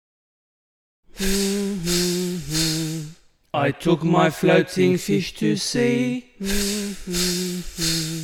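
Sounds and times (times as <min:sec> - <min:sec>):
speech: 0:01.2 - 0:01.9, 0:03.6 - 0:08.2
air hissing out of a punctured inflatable: 0:01.2 - 0:03.2, 0:06.4 - 0:08.2
low whistling tone: 0:01.2 - 0:03.2, 0:06.4 - 0:08.2.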